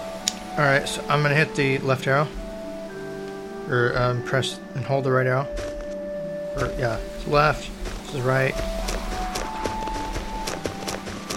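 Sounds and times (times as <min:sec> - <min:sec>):
speech: 0:00.6 - 0:02.4, 0:03.7 - 0:05.7, 0:06.6 - 0:08.7
video game character running footstep taps: 0:05.5 - 0:11.3.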